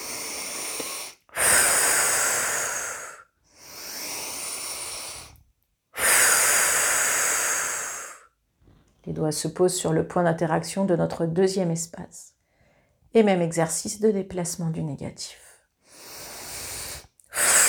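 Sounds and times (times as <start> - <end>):
exhalations during a guided relaxation breathing exercise: 0.0 - 5.4, 6.0 - 8.4, 15.8 - 17.6
speech: 9.1 - 12.4, 13.2 - 15.5.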